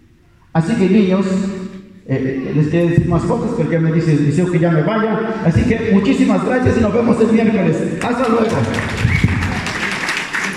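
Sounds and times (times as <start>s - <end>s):
speech: 0.6s - 9.1s
audience applause: 8.0s - 10.5s.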